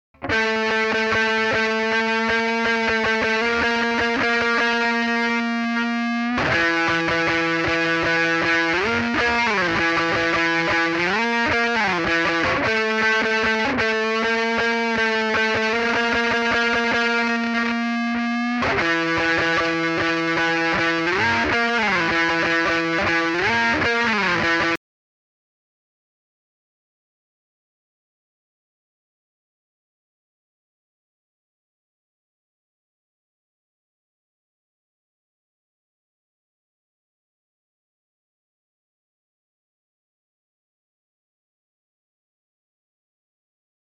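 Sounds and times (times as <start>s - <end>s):
solo guitar: 0.2s - 24.8s.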